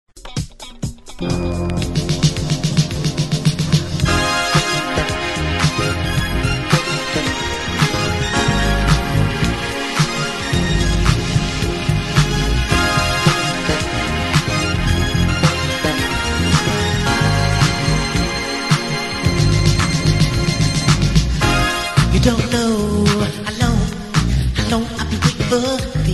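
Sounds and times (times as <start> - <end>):
modern soul music from a radio show: 0.2 - 26.1.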